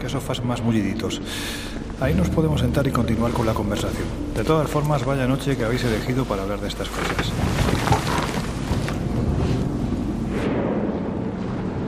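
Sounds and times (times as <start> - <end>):
speech: 0.0 - 8.2
storm: 7.1 - 11.8.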